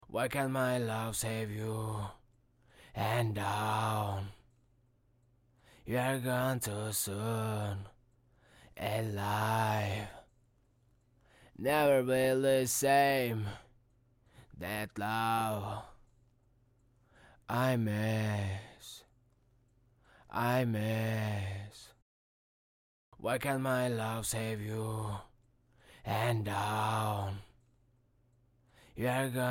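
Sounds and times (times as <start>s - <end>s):
hip hop a cappella vocal in A minor at 82 BPM: 0.0s - 4.6s, 5.6s - 10.4s, 11.3s - 16.2s, 17.2s - 19.2s, 20.2s - 22.0s, 23.2s - 27.7s, 28.8s - 29.4s.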